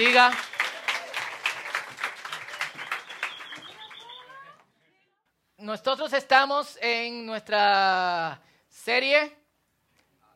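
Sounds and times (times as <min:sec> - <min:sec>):
speech: 0:00.0 - 0:00.5, 0:05.6 - 0:09.4
crowd applause: 0:00.0 - 0:04.6
faint whistles: 0:02.2 - 0:04.5.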